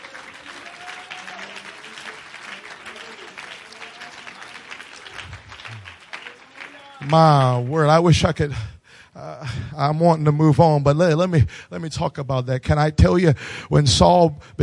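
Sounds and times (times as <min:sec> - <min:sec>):
audience clapping: 0:00.0 - 0:08.4
speech: 0:07.0 - 0:08.7, 0:09.8 - 0:14.6.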